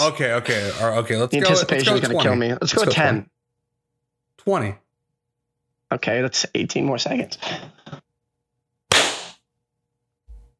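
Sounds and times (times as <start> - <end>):
speech: 0.0 - 3.3, 4.4 - 4.8, 5.9 - 8.0
group clapping hands: 8.9 - 9.3.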